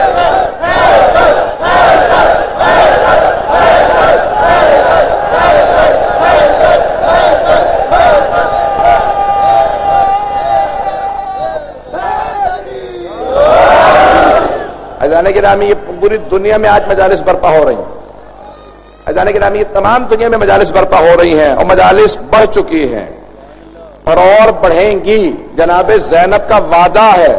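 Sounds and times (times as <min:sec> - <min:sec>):
crowd at a Shia religious majlis chanting a slogan in unison: 0:00.0 - 0:15.0
speech: 0:15.3 - 0:17.9, 0:19.2 - 0:23.2, 0:24.1 - 0:27.3.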